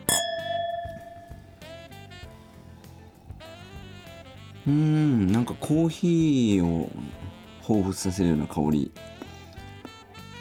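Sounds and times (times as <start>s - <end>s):
wine glasses clinking in a toast: 0.0s - 1.7s
soft music: 0.0s - 10.4s
speech: 4.7s - 9.2s.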